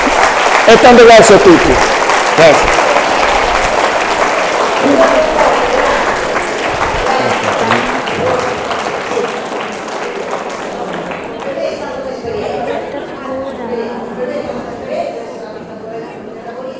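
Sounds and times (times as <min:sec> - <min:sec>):
audience applause: 0:00.0 - 0:12.6
speech: 0:00.7 - 0:02.8, 0:04.8 - 0:05.1.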